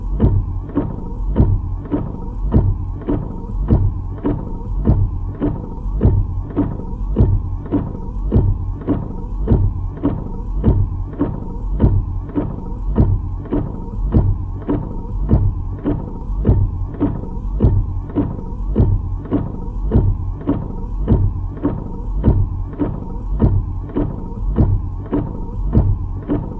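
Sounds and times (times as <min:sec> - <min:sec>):
car windshield wipers: 0:00.0 - 0:26.5.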